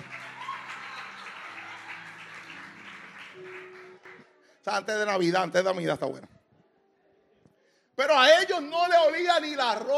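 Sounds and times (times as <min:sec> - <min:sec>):
audience applause: 0:00.0 - 0:04.2
speech: 0:04.7 - 0:06.3, 0:08.1 - 0:09.9.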